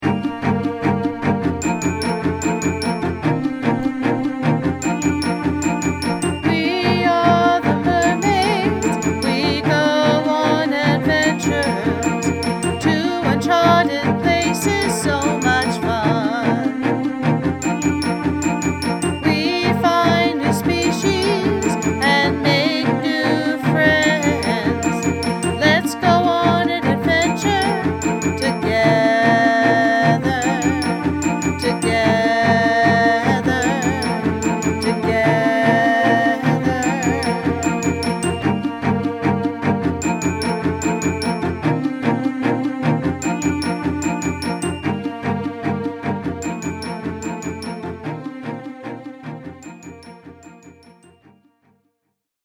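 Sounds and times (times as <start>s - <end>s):
person singing: 0.0s - 47.7s.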